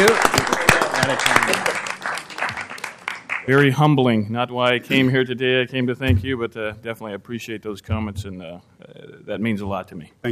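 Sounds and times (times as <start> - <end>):
audience applause at a public meeting: 0.0 - 3.5
speech: 3.5 - 10.3.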